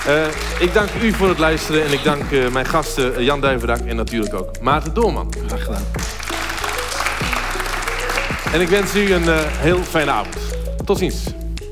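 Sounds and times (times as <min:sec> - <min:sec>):
audience applause: 0:00.0 - 0:02.8, 0:06.0 - 0:10.6
speech: 0:00.0 - 0:06.1, 0:08.5 - 0:11.4.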